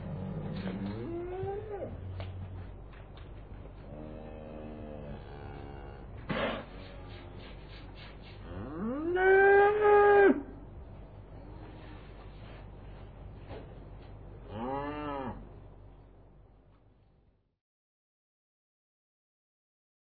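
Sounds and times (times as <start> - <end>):
cow mooing: 0.0 - 2.3, 3.8 - 7.2, 8.5 - 10.5, 14.5 - 15.5.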